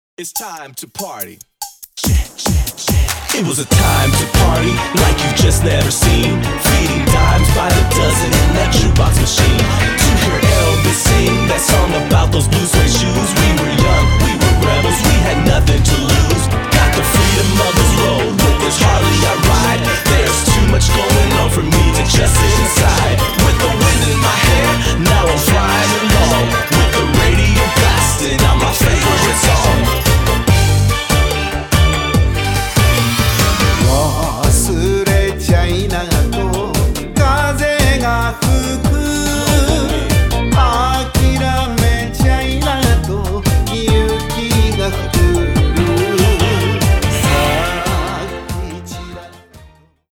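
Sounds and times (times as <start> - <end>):
rap music: 0.2 - 49.8.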